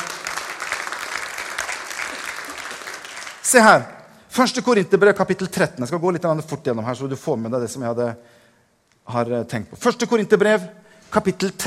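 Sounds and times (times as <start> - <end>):
audience applause: 0.0 - 3.4
speech: 3.5 - 8.4, 9.1 - 11.6.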